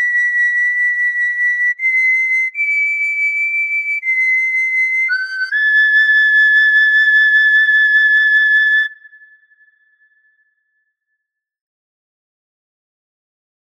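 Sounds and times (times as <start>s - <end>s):
grass whistle melody: 0.0s - 9.8s.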